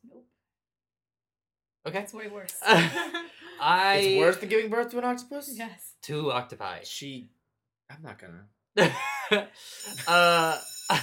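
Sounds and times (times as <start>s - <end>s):
speech: 1.8s - 11.0s
bell ringing: 9.6s - 11.0s.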